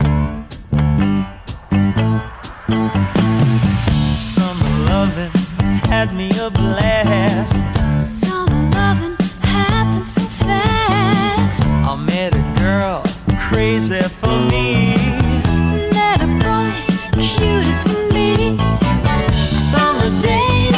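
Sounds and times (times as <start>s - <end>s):
music loop at 124 bpm in D: 0.0s - 20.7s.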